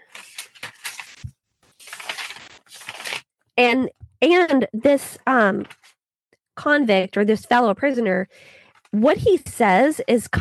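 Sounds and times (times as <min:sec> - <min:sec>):
paper rustling and shuffling while pages are searched: 0:00.0 - 0:03.3
speech: 0:03.6 - 0:05.8, 0:06.6 - 0:10.3.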